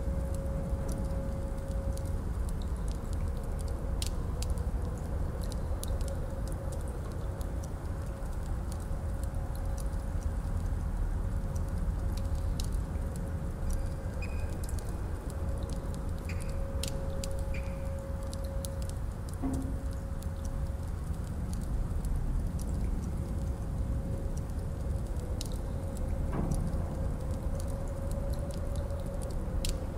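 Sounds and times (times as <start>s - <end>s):
castle ambience: 0.0s - 29.9s.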